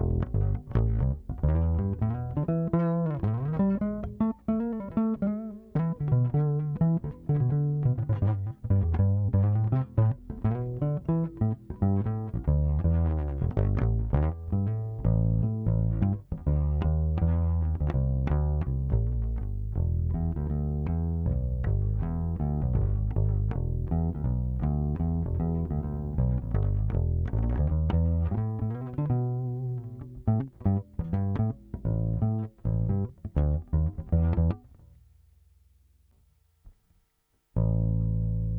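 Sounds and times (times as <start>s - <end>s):
bass guitar through a pickup: 0.0s - 35.0s, 37.6s - 38.5s.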